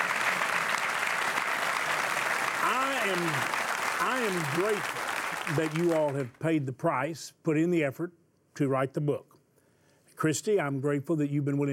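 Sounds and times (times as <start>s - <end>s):
studio audience applause welcoming two guests onto a talk show: 0.0s - 6.3s
speech: 3.0s - 9.3s, 10.2s - 11.7s.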